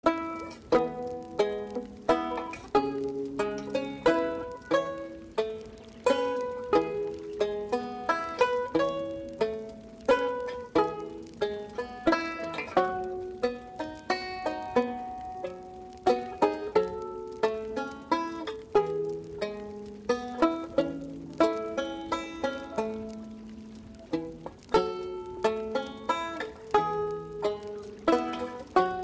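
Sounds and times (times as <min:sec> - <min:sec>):
banjo: 0:00.0 - 0:29.0.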